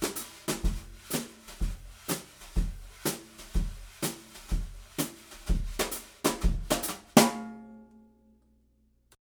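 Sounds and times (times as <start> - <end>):
brushes on snare drum recorded with overhead microphone: 0.0 - 7.4.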